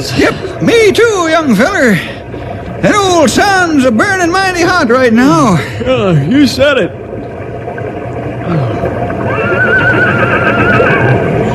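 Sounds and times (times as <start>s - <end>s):
speech: 0.0s - 2.2s, 2.8s - 7.0s, 8.5s - 8.8s
horse whinnying: 9.2s - 11.3s.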